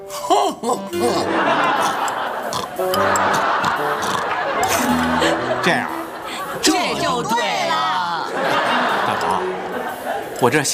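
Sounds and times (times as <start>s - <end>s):
speech: 0.1s - 6.0s, 10.4s - 10.7s
laughter: 0.3s - 10.7s
person imitating snoring with nasal sound: 4.0s - 4.2s.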